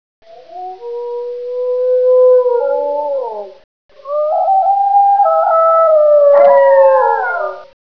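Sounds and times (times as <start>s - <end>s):
wolf: 2.6s - 7.8s.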